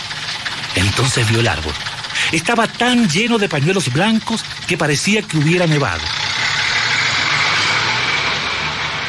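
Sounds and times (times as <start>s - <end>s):
large bus engine idling: 0.0s - 9.0s
speech: 0.8s - 6.2s.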